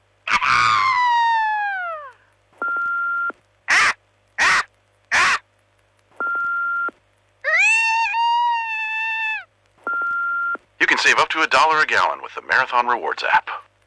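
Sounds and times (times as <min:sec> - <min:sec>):
people imitating a bald eagle's call: 0:00.3 - 0:02.1, 0:03.7 - 0:05.4, 0:07.5 - 0:09.4
electronic beeps: 0:02.6 - 0:03.4, 0:09.9 - 0:10.6
speech: 0:10.9 - 0:13.5.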